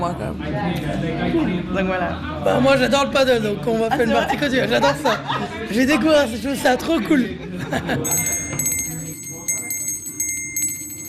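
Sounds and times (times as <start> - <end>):
speech: 0.0 - 8.4
laughter: 3.7 - 6.1, 7.1 - 8.4
small handbell rung to announce the next round at a padel game: 8.0 - 11.0.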